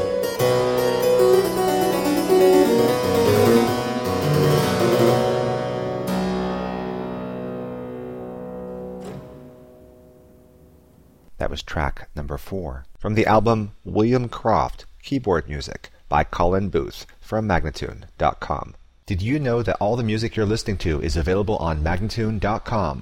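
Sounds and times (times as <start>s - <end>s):
keyboard prelude in C minor: 0.0s - 11.3s
person speaking: 11.3s - 23.0s.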